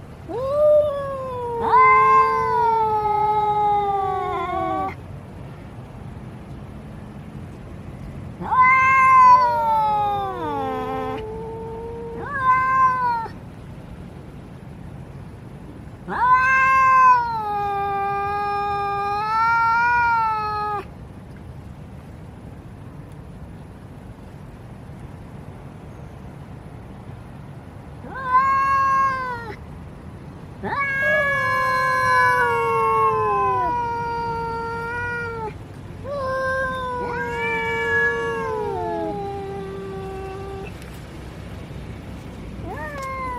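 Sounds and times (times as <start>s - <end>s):
domestic cat meowing: 0.3s - 5.0s, 8.4s - 13.4s, 16.1s - 20.8s, 28.0s - 29.6s, 30.6s - 40.8s, 42.6s - 43.3s.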